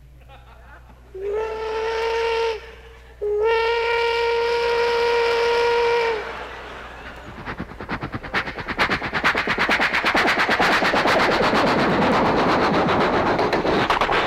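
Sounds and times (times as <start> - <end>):
laughter: 0.2 - 1.4, 6.0 - 8.6
steam train whistle at night: 1.1 - 8.6
low rumble: 5.8 - 14.2.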